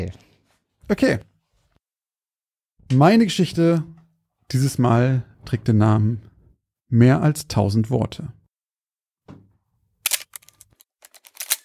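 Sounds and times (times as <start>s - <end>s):
speech: 0.0s - 0.2s, 0.9s - 1.3s, 2.9s - 3.9s, 4.5s - 6.3s, 6.9s - 8.4s
camera film advance lever ratcheting: 10.1s - 11.6s.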